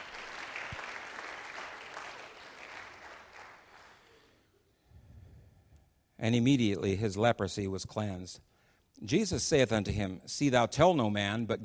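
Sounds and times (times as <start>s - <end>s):
audience clapping hands: 0.0s - 4.3s
speech: 6.2s - 11.6s.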